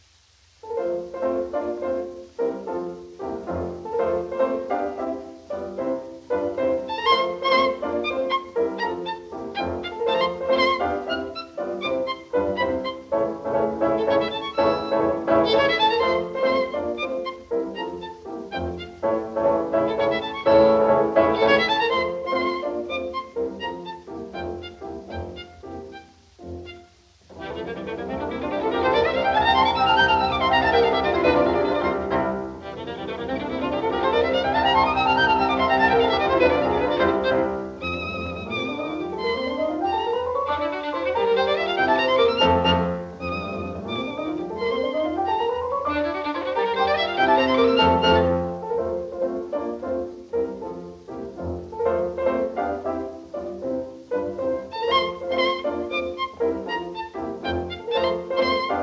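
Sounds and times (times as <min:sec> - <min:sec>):
violin sonata: 0:00.6 - 0:58.8.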